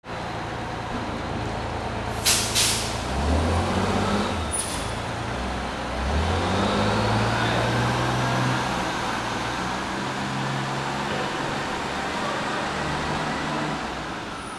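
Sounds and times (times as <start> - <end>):
vehicles: 0.0 - 14.5.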